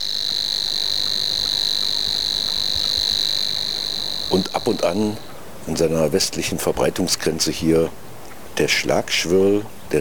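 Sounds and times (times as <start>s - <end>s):
Savi's warbler reeling song: 0.0s - 5.4s
speech: 4.3s - 9.9s.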